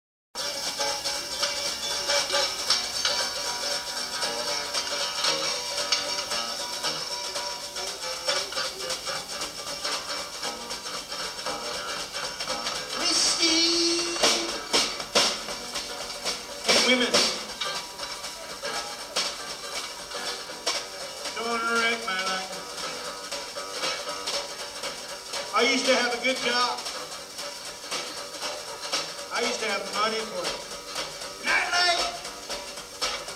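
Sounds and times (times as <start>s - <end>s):
duet for giant bass: 0.4s - 33.3s.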